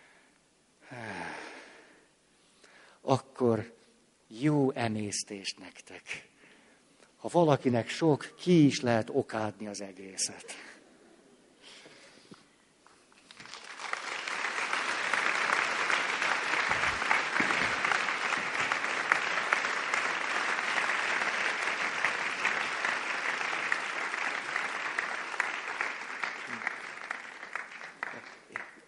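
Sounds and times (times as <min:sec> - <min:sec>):
speech: 0:03.0 - 0:03.8, 0:04.4 - 0:06.3, 0:07.2 - 0:10.7
audience applause: 0:13.3 - 0:28.8.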